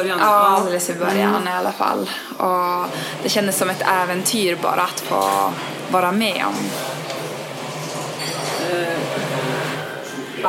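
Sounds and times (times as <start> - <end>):
speech: 0.0 - 7.1
running water: 0.0 - 10.4
voices murmuring: 0.0 - 10.4
crockery clinking while dishes are washed: 7.8 - 8.8.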